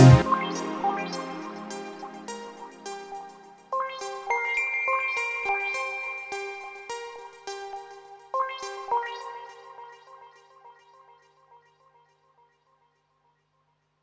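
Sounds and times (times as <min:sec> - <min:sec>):
Jupiter 6 synthesizer track: 0:00.0 - 0:07.6.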